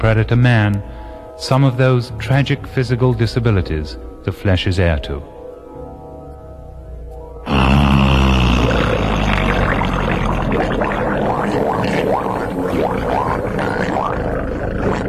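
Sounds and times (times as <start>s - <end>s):
speech: 0.0s - 5.4s
humpback whale underwater recording off Baja California: 7.5s - 15.0s.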